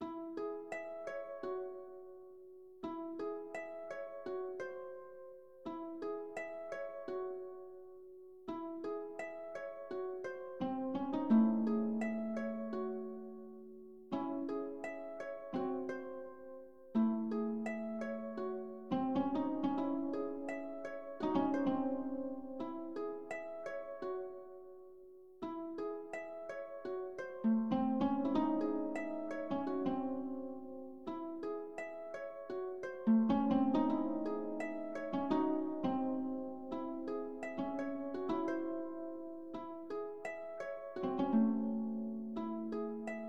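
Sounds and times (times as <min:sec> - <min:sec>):
music: 0:00.0 - 0:43.2.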